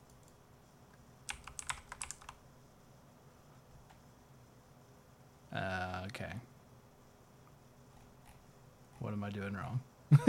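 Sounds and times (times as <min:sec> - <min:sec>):
typing on a computer keyboard: 0:01.3 - 0:02.4
speech: 0:06.2 - 0:06.5, 0:09.0 - 0:10.2.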